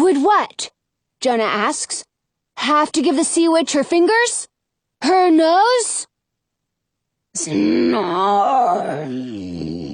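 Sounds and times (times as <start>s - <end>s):
speech: 0.1s - 6.1s, 7.4s - 9.8s
person groaning: 7.4s - 9.9s.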